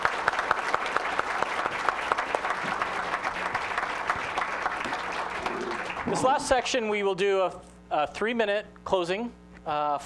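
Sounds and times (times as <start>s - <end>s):
audience applause: 0.0s - 6.8s
speech: 6.1s - 10.0s.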